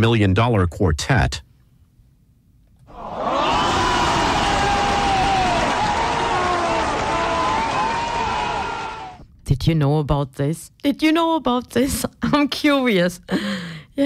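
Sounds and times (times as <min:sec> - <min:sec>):
speech: 0:00.0 - 0:01.5, 0:09.6 - 0:14.0
voices cheering: 0:02.9 - 0:09.2
applause: 0:03.2 - 0:09.2.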